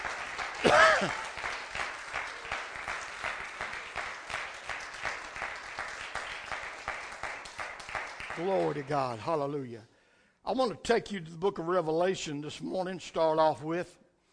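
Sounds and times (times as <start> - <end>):
crowd clapping: 0.0 - 9.3
speech: 0.6 - 1.3, 8.4 - 9.9, 10.5 - 14.0.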